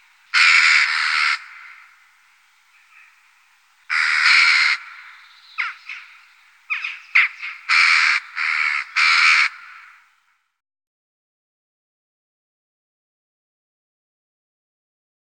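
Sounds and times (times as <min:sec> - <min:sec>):
western jackdaw chattering and calling: 0:00.0 - 0:02.1, 0:02.7 - 0:10.1.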